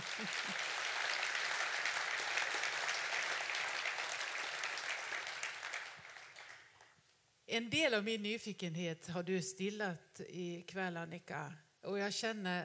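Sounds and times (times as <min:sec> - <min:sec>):
audience applause: 0:00.0 - 0:06.8
speech: 0:00.2 - 0:00.7, 0:07.5 - 0:12.6.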